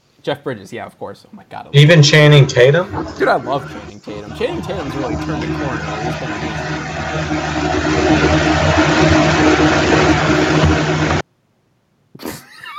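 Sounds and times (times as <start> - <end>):
speech: 0.2 - 10.9
train passing: 1.8 - 11.2.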